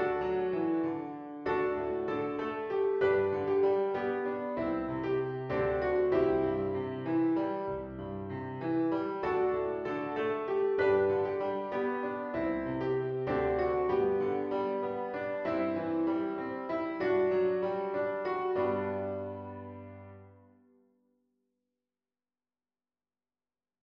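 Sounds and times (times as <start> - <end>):
piano piece: 0.0 - 20.6.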